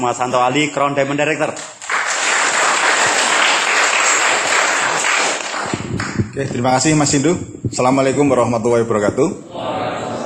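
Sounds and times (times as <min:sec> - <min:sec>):
speech: 0:00.0 - 0:01.8, 0:06.4 - 0:09.8
audience applause for the trainer: 0:01.8 - 0:06.3.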